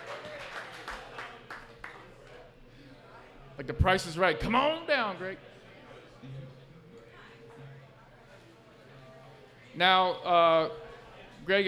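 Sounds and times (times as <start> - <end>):
audience applause: 0.0 - 2.0
speech: 3.6 - 5.5, 9.8 - 10.8, 11.4 - 11.6.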